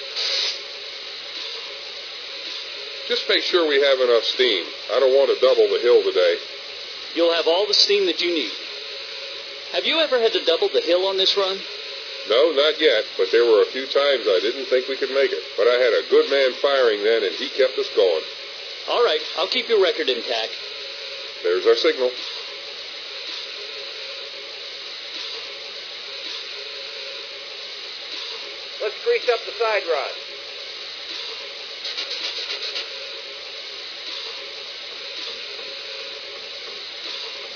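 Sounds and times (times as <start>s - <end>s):
trains: 0.0s - 37.5s.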